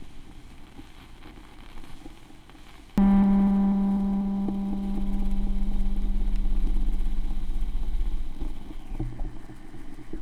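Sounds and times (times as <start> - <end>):
vinyl record noise: 3.0 - 9.6
tape echo effect: 3.0 - 10.0.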